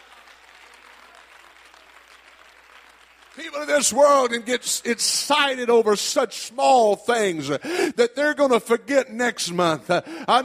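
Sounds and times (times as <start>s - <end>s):
audience applause: 0.0s - 4.6s
speech: 3.4s - 10.4s.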